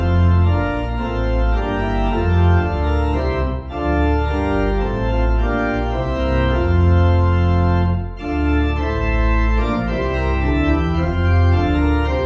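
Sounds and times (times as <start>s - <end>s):
pipe organ playing a hymn: 0.0s - 12.2s.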